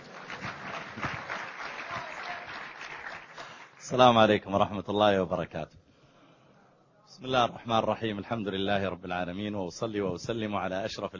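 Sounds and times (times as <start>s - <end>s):
audience applause: 0.0s - 3.8s
speech: 3.9s - 5.8s, 7.2s - 11.1s.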